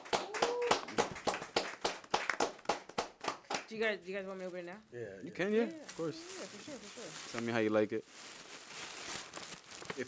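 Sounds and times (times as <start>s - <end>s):
small group of guests clapping: 0.0s - 3.9s
speech: 3.7s - 8.4s.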